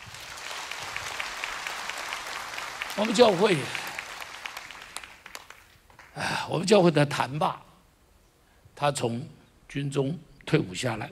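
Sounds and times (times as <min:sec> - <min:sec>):
audience applause: 0:00.0 - 0:06.2
speech: 0:03.0 - 0:03.8, 0:06.2 - 0:07.6, 0:08.8 - 0:11.0.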